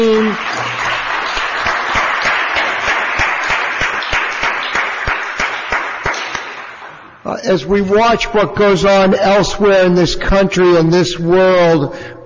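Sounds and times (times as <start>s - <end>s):
audience applause: 0.0s - 7.1s
speech: 7.4s - 12.2s.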